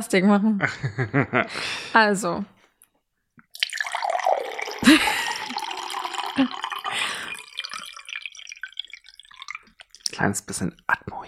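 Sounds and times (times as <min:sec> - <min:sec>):
speech: 0:00.0 - 0:02.6, 0:10.2 - 0:11.2
water dripping: 0:03.4 - 0:11.2
water being poured into a glass: 0:03.5 - 0:10.3.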